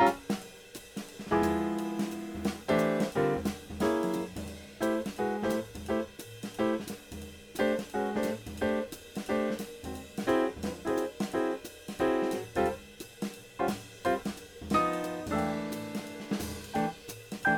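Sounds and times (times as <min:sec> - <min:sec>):
bass backing track: 0:01.3 - 0:06.9, 0:07.6 - 0:11.0, 0:12.0 - 0:12.8, 0:13.6 - 0:17.5.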